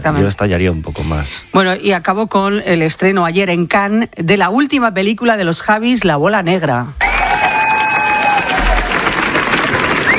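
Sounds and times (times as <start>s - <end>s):
speech: 0.0s - 7.1s
festival audience applause in Cannes: 7.0s - 10.1s.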